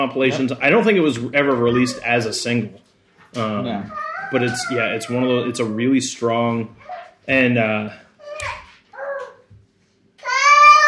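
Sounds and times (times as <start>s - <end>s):
speech: 0.0s - 8.6s
dogs playing in a house, whining and yipping: 3.9s - 4.8s.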